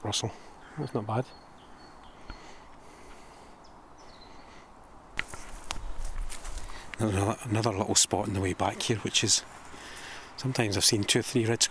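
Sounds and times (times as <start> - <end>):
speech: 0.0 - 1.5, 7.0 - 9.6, 10.4 - 11.6
faint birdsong: 0.0 - 11.6
footsteps crunching and snapping twigs: 5.1 - 7.0
rustling: 5.2 - 7.1.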